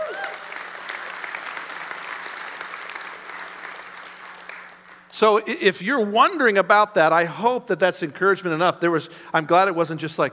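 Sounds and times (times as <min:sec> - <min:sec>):
audience applause: 0:00.0 - 0:05.1
speech: 0:05.2 - 0:10.3.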